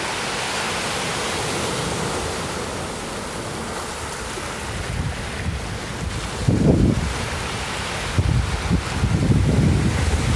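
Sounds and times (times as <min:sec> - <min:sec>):
surf at Lover's Point Beach in Pacific Grove, California: 0:00.0 - 0:10.3
gusty wind buffeting: 0:00.8 - 0:10.3.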